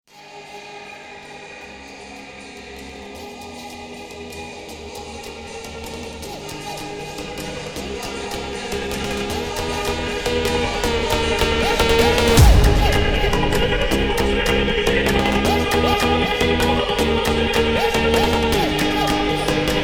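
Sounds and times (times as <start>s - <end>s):
sped-up funk music: 7.2s - 19.8s.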